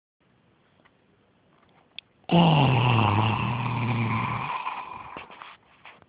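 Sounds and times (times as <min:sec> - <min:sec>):
zombie groaning: 0:02.3 - 0:05.2.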